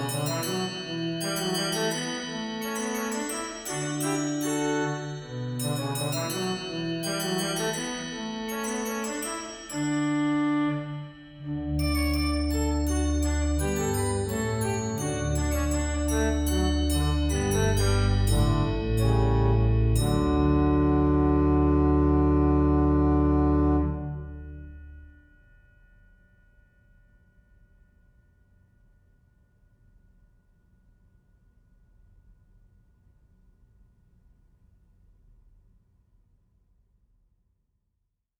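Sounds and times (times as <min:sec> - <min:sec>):
organist playing a trumpet tune: 0:00.0 - 0:24.6.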